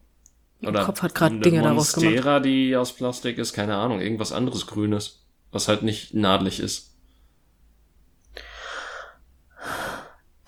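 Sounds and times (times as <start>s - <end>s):
speech: 0.6s - 6.9s
heavy breathing into a microphone: 8.4s - 10.2s.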